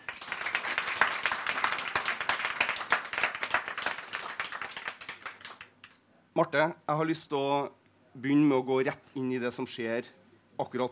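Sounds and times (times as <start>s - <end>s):
audience applause: 0.0s - 6.0s
speech: 6.4s - 10.9s.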